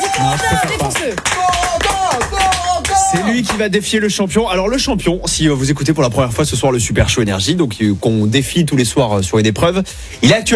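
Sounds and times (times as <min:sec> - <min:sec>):
voices whooping: 0:00.0 - 0:03.6
audience clapping: 0:00.0 - 0:03.8
speech: 0:00.2 - 0:01.8, 0:03.1 - 0:10.5.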